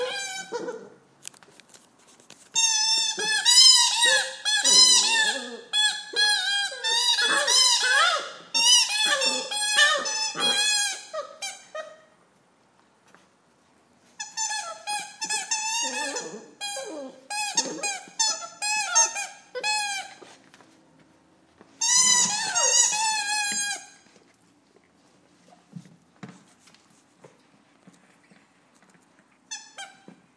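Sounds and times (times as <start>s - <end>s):
puppy with a squeaky ball: 0.0s - 0.9s, 2.6s - 12.0s, 14.2s - 20.2s, 21.8s - 24.0s.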